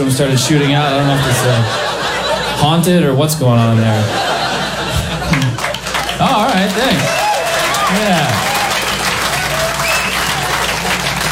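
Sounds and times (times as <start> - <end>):
speech: 0.0 - 4.4, 6.2 - 7.2, 7.9 - 8.5
laughter: 0.1 - 11.2
audience applause: 4.8 - 11.2.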